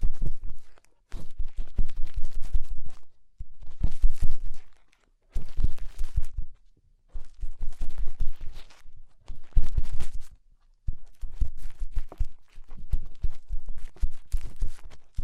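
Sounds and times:
fingers rubbing and scraping inside an ear: 0.0s - 15.2s.

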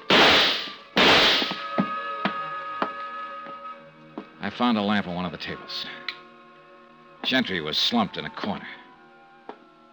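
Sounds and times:
gunshots fired in a dark room: 0.0s - 1.7s
speech: 4.5s - 6.1s, 7.2s - 8.8s.

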